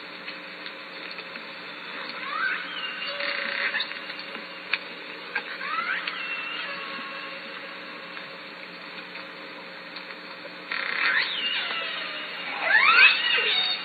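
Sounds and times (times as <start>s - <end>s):
Southern Resident killer whale pulsed calls: 2.1s - 4.3s, 5.5s - 8.0s, 10.7s - 13.8s.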